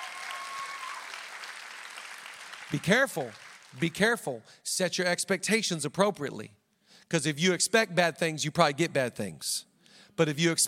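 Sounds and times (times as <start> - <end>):
audience clapping: 0.0 - 4.1
speech: 2.7 - 10.6.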